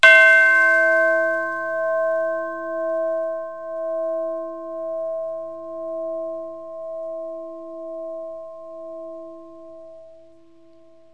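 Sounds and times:
school bell ringing: 0.0s - 4.7s.

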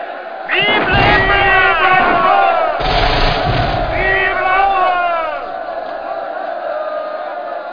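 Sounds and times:
melee combat: 0.5s - 6.1s.

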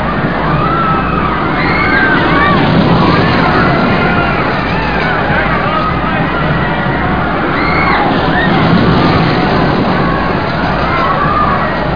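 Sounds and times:
roller ride riders screaming: 0.0s - 11.9s.

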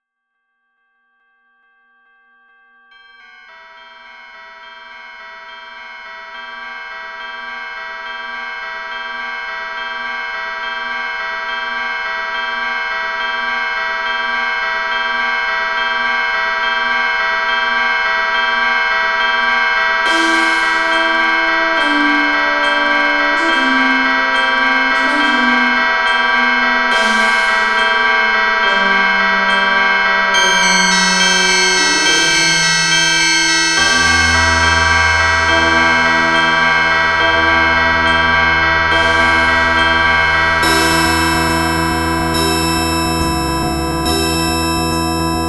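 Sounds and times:
bells ringing: 3.0s - 45.4s.

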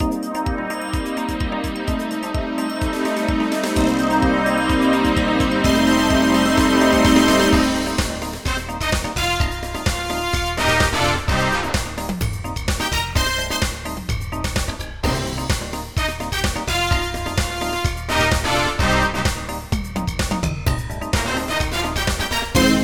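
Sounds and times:
dance music: 0.0s - 22.8s.

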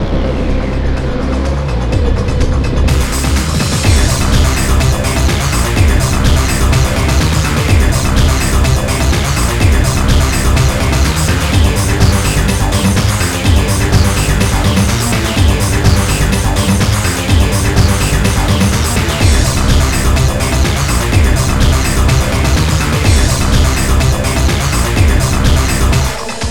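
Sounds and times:
techno music: 0.0s - 26.5s.

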